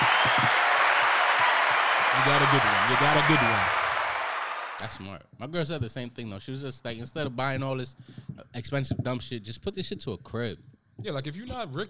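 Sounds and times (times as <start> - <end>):
applause: 0.0 - 5.0
speech: 2.2 - 3.8, 4.8 - 11.8.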